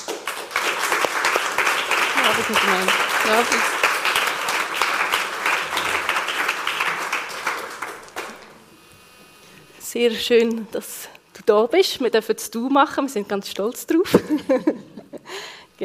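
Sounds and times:
audience applause welcoming a government councillor: 0.0s - 8.6s
speech: 2.3s - 3.8s, 10.0s - 14.9s.

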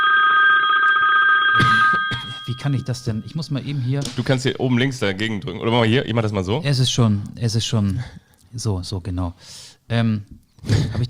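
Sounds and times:
modern mobile phone ringtone ringing: 0.0s - 3.5s
speech: 2.5s - 11.0s.

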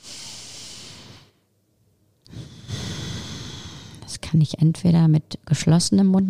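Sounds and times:
person taking a slow deep breath as a calming exercise: 0.0s - 1.5s, 2.3s - 4.0s
speech: 4.2s - 6.2s.

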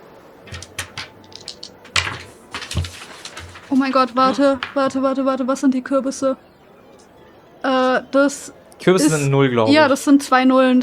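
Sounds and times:
dice rattling and tumbling across a hard surface: 0.5s - 5.0s
speech: 3.7s - 6.5s, 8.0s - 10.8s.

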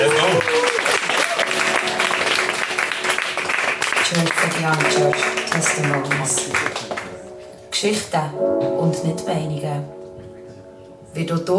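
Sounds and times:
audience applause: 0.0s - 7.3s
speech: 4.1s - 6.7s, 7.8s - 10.0s, 11.2s - 11.5s.

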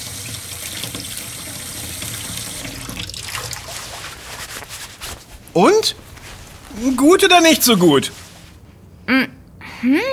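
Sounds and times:
running tap water washing a leaf: 0.0s - 4.2s
speech: 5.6s - 6.0s, 6.8s - 8.2s.

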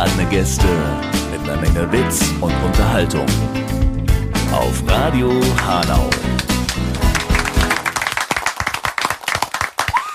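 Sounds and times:
speech: 0.3s - 6.9s
applause: 5.4s - 10.1s.

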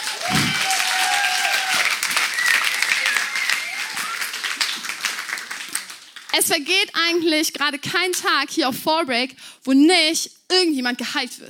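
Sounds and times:
applause: 0.0s - 6.7s
speech: 6.4s - 11.4s.

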